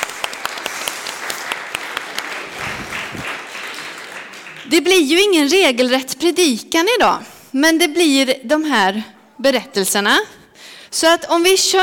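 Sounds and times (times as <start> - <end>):
sharper closer hand claps: 0.0 - 4.7
room full of people applauding: 0.0 - 5.1
speech: 4.7 - 11.8.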